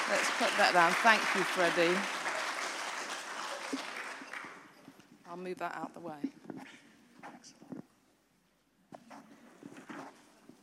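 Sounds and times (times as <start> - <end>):
audience applause for stage helpers at a live show: 0.0 - 4.7
speech: 0.1 - 2.2, 5.4 - 6.8.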